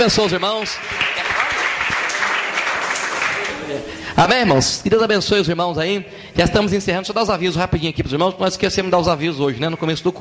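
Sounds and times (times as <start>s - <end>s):
speech: 0.0s - 1.1s, 3.7s - 10.1s
church audience applauding: 0.0s - 4.0s.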